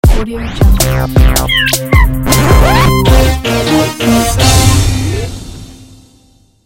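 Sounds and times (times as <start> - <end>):
techno fanfare ident: 0.7 - 5.9.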